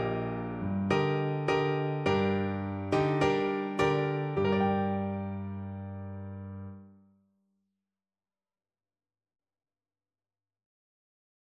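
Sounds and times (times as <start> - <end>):
improvising on a dominant chord: 0.0 - 6.8.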